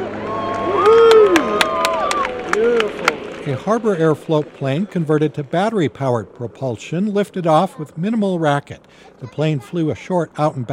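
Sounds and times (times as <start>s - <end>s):
crowd on a riverbank cheering and shouting: 0.0s - 4.6s
people clapping: 0.0s - 4.7s
speech: 3.4s - 10.7s.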